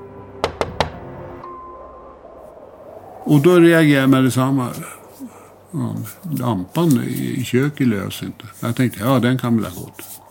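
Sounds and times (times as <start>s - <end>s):
knocking on a door: 0.4s - 1.0s
speech: 3.2s - 10.2s.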